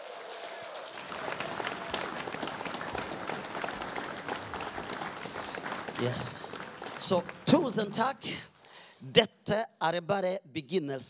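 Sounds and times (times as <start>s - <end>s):
audience applause: 0.0s - 8.0s
speech: 6.0s - 6.4s, 7.0s - 11.0s.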